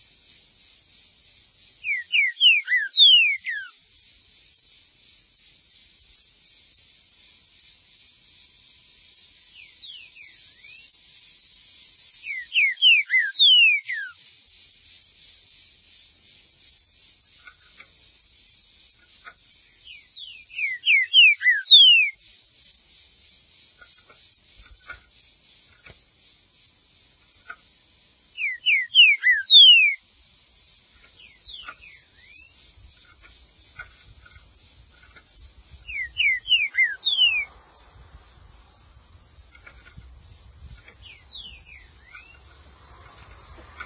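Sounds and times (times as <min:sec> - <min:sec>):
green-winged saltator whistling falling notes: 0:01.8 - 0:03.7, 0:12.2 - 0:14.2, 0:19.8 - 0:22.2, 0:28.4 - 0:30.0, 0:35.8 - 0:37.5.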